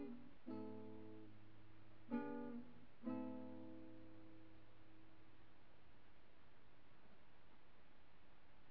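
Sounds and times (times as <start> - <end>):
guitar: 0.0 - 6.2.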